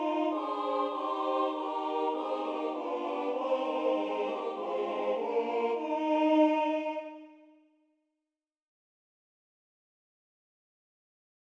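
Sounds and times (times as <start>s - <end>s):
carol singing from Ardeal: 0.0s - 7.2s.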